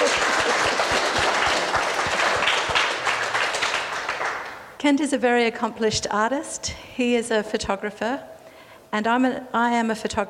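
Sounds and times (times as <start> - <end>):
room full of people applauding: 0.0 - 4.6
speech: 4.8 - 8.3, 8.9 - 10.2.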